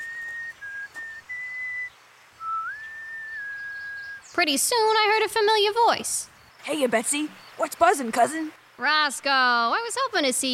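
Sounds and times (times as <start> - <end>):
person whistling: 0.0 - 4.2
speech: 4.4 - 10.5.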